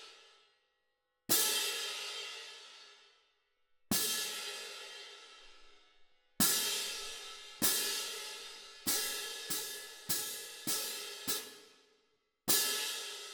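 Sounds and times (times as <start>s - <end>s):
cymbal: 1.3s - 2.9s, 3.9s - 5.7s, 6.4s - 11.8s, 12.5s - 13.3s.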